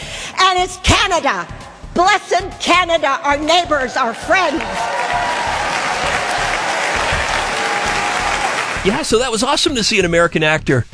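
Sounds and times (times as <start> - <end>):
speech: 0.5 - 5.4, 8.8 - 10.9
audience applause: 4.0 - 9.4.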